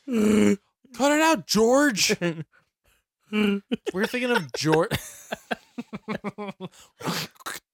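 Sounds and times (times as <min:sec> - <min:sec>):
person imitating gargling mouthwash: 0:00.1 - 0:00.6, 0:07.0 - 0:07.7
speech: 0:00.1 - 0:02.6, 0:03.3 - 0:07.6
laughter: 0:03.4 - 0:06.8.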